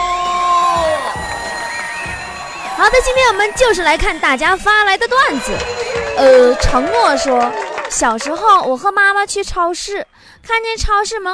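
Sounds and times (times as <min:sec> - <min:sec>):
audience cheering welcoming a host: 0:00.0 - 0:08.9
sustained musical tones: 0:01.2 - 0:08.4
speech: 0:02.9 - 0:11.3.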